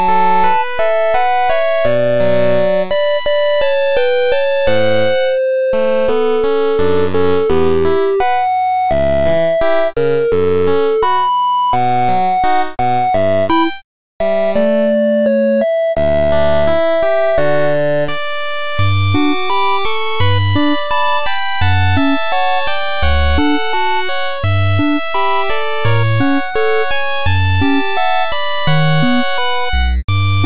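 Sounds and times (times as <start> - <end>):
8-bit chiptune music loop: 0.0 - 30.4.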